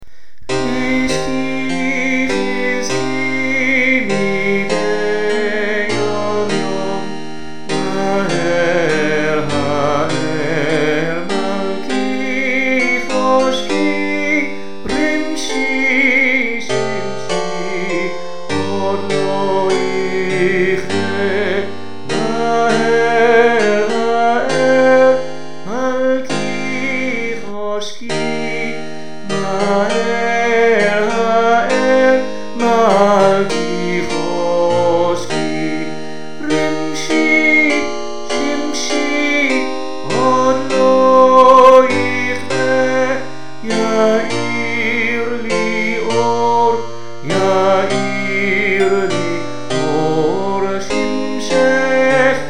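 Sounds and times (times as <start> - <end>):
harpsichord: 0.0 - 52.4.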